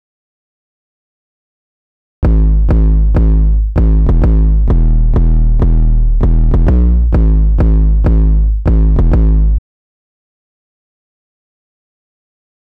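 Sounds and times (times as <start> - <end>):
clipped 808 bass: 2.2 - 9.6.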